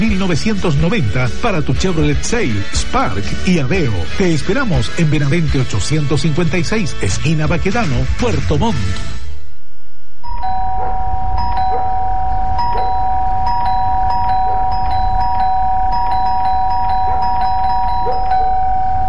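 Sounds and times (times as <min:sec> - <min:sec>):
speech: 0:00.2 - 0:09.2
steady low rumble: 0:09.4 - 0:19.0
electronic doorbell ringing: 0:10.2 - 0:19.0.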